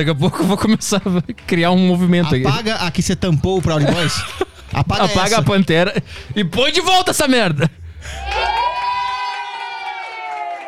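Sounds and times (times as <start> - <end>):
laughter: 0.0 - 1.5, 3.6 - 6.3
speech: 0.0 - 8.5
crowd cheering with high-pitched whoop: 8.1 - 10.6.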